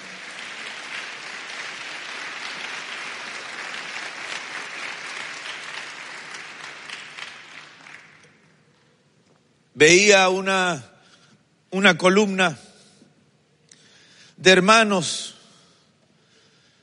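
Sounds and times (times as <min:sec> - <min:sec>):
audience clapping: 0:00.0 - 0:08.8
speech: 0:09.8 - 0:10.9, 0:11.7 - 0:12.6, 0:14.4 - 0:15.4.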